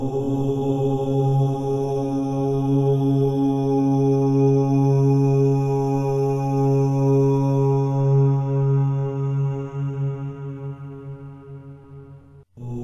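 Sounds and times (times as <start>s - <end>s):
om chanting for meditation: 0.0s - 12.8s.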